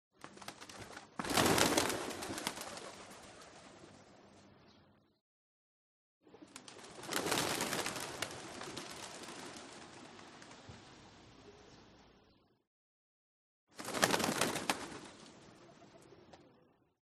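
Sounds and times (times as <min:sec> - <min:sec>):
pigeon wings flapping: 0:00.1 - 0:04.0, 0:06.3 - 0:10.9, 0:13.8 - 0:16.4.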